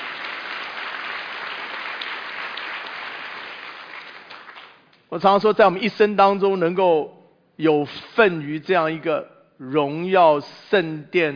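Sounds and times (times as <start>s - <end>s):
audience applause: 0.0s - 4.8s
speech: 5.1s - 11.3s.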